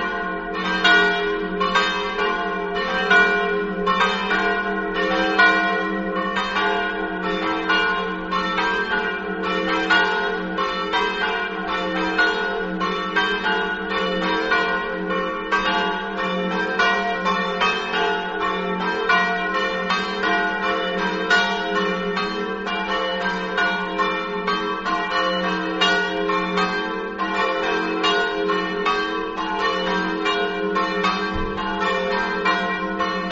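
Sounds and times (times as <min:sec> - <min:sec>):
bells ringing in Gradisca: 0:00.0 - 0:33.2.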